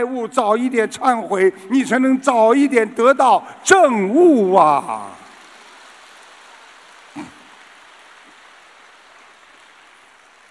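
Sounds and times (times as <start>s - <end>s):
speech: 0.0s - 5.2s
audience applause: 4.5s - 10.4s.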